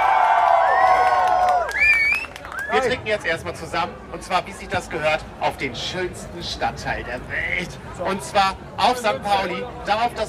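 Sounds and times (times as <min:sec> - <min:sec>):
audience applause: 0:00.0 - 0:02.8
speech: 0:02.8 - 0:10.2.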